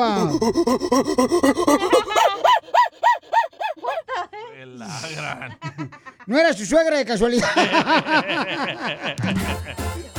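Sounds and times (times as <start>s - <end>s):
speech: 0.0s - 2.9s, 6.3s - 9.8s
man imitating a gorilla with his voice: 0.0s - 4.1s
laughter: 0.0s - 6.3s, 7.4s - 10.0s.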